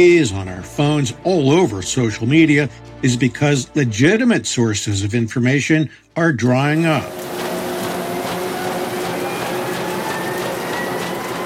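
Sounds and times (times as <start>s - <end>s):
speech: 0.0s - 7.5s
newspaper printing press revving up: 6.8s - 11.4s.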